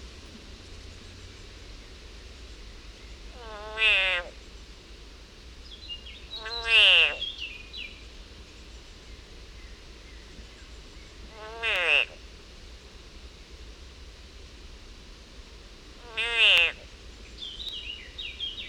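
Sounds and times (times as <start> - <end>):
frog screaming in agony: 3.4 - 4.3, 6.4 - 7.2, 11.3 - 12.2, 16.0 - 16.8.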